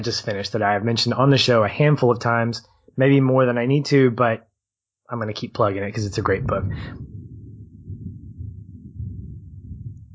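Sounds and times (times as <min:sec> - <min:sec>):
speech: 0:00.0 - 0:04.5, 0:05.1 - 0:07.1
thunder rumbling from a storm: 0:05.9 - 0:10.1.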